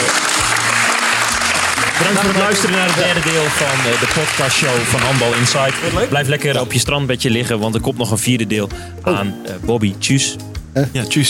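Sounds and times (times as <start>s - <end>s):
crowd clapping: 0.0s - 6.2s
laughter: 1.3s - 6.2s
speech: 2.0s - 11.2s.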